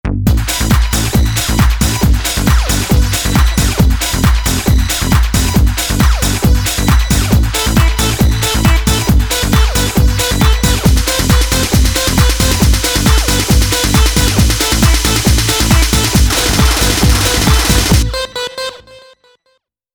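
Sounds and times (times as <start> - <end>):
techno music: 0.1 - 19.3.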